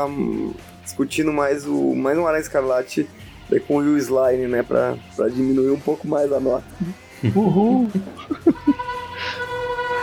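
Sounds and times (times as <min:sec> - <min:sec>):
speech: 0:00.0 - 0:08.5
laughter: 0:06.8 - 0:10.0
car horns honking in celebration: 0:08.4 - 0:10.0.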